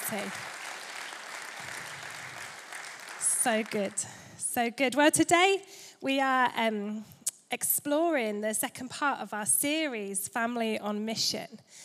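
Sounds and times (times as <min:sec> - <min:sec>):
audience applause: 0:00.0 - 0:04.2
speech: 0:00.1 - 0:00.6, 0:03.4 - 0:11.8.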